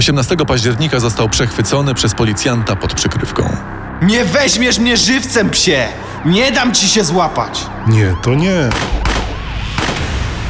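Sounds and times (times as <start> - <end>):
speech: 0.0 - 9.1
steady dense noisy background: 0.0 - 10.4
gunshots: 8.4 - 10.4.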